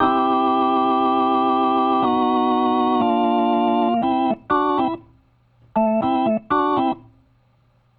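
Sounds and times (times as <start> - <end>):
1970s analog funk organ: 0.0 - 5.0, 5.8 - 7.0.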